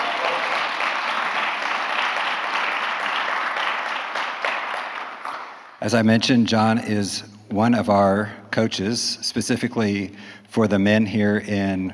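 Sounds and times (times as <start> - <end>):
audience applause welcoming a speaker: 0.0 - 5.7
speech: 5.8 - 11.9.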